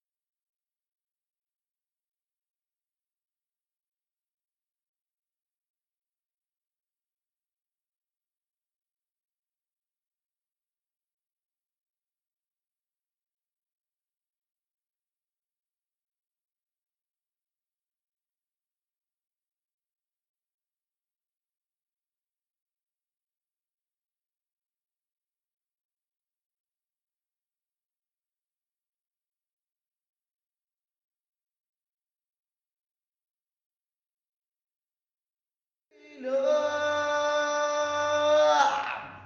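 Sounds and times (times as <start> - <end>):
choir voices: 35.9 - 39.2.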